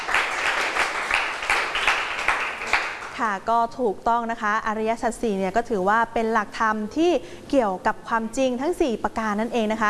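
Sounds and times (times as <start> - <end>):
classroom applause: 0.0 - 3.2
speech: 3.2 - 9.8.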